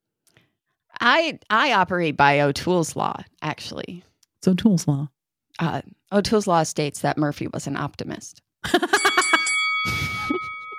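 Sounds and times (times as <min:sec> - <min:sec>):
speech: 0:01.0 - 0:09.1
timer bell ringing: 0:08.8 - 0:10.7.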